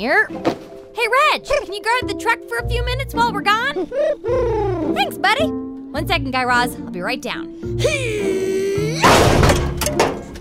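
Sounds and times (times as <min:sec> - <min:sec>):
speech: 0:00.0 - 0:08.4
laughter: 0:07.8 - 0:09.0
door being kicked down: 0:09.0 - 0:10.3.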